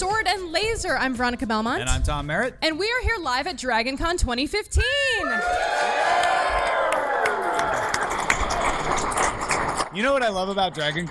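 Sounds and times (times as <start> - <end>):
speech: 0.0 - 6.3, 9.9 - 11.0
convention crowd cheering at DragonCon 2015: 5.2 - 9.3.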